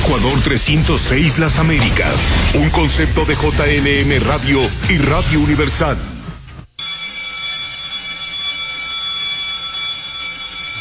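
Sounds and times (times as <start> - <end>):
speech: 0.1 - 6.1
school bell ringing: 6.8 - 10.8.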